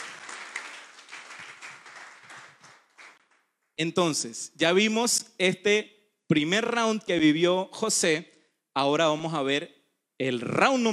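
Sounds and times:
audience applause: 0:00.0 - 0:03.3
speech: 0:03.8 - 0:10.9.

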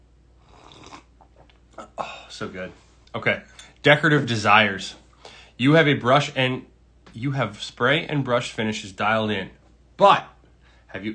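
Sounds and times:
sipping hot vanilla caramel tea: 0:00.4 - 0:01.7
speech: 0:02.4 - 0:05.0, 0:05.6 - 0:10.3, 0:10.9 - 0:11.1.

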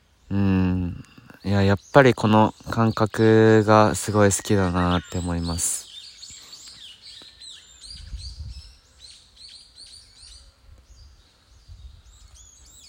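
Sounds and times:
birds chirping: 0:00.0 - 0:12.8
speech: 0:01.4 - 0:05.8
low wind rumble: 0:07.8 - 0:08.8.

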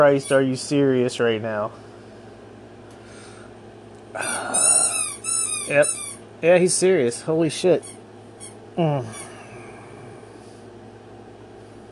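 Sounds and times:
speech: 0:00.0 - 0:01.9, 0:05.7 - 0:08.0, 0:08.8 - 0:09.2
pet's squeaky toy squeak: 0:00.1 - 0:00.4, 0:04.6 - 0:06.2, 0:07.8 - 0:08.6.

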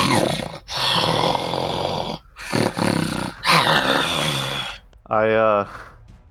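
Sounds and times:
person imitating an angry cat with growls and snarls: 0:00.0 - 0:04.8.

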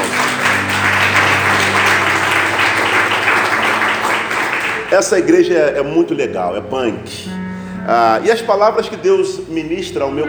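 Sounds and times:
audience applauding: 0:00.0 - 0:05.3
speech: 0:04.9 - 0:10.2.

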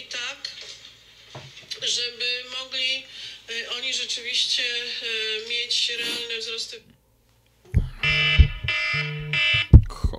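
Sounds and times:
speech: 0:01.8 - 0:07.0
dull thumps: 0:07.7 - 0:10.1
phone ringing with buzzy electronic bursts: 0:07.8 - 0:09.9.

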